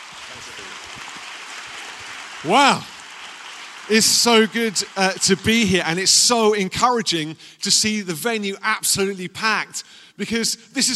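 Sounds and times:
audience applause: 0.0 - 6.8
speech: 2.4 - 2.9, 3.9 - 10.9.

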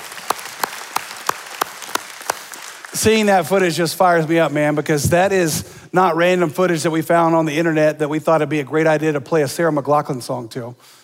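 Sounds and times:
audience clapping in rhythm: 0.0 - 4.9
speech: 3.0 - 11.0.

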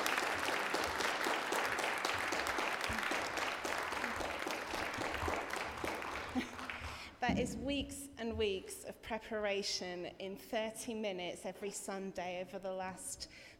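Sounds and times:
audience round of applause: 0.0 - 7.1
speech: 7.2 - 13.5.

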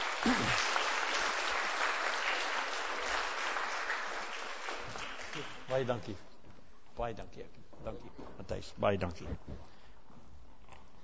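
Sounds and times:
audience applause: 0.0 - 5.9
speech: 0.2 - 0.8, 5.4 - 6.3, 7.0 - 9.8.

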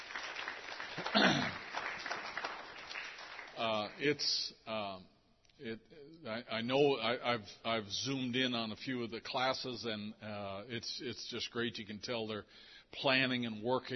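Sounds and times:
audience applause: 0.0 - 4.0
speech: 3.6 - 13.9.

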